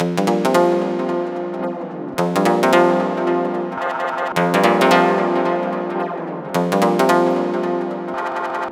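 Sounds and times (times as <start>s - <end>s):
melodic loops: 0.0s - 8.6s.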